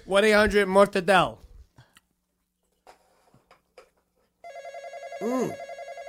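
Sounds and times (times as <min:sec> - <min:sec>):
speech: 0:00.1 - 0:01.4, 0:05.2 - 0:05.6
electronic telephone ringing with a loud warbling pulse: 0:04.4 - 0:06.0.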